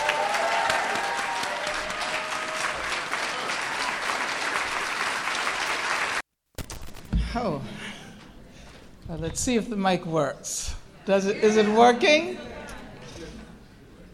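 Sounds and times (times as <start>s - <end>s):
audience applause greeting Angela Davis at a Chicago afternoon rally: 0.0s - 6.2s
speech: 7.4s - 7.8s, 9.1s - 12.5s.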